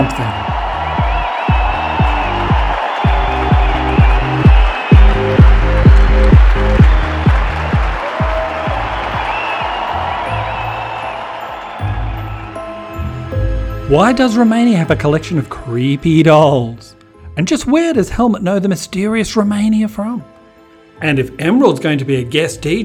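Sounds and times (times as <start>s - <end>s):
noisy waiting crowd: 0.0s - 13.3s
speech: 0.2s - 0.5s, 13.9s - 20.3s, 21.0s - 22.8s.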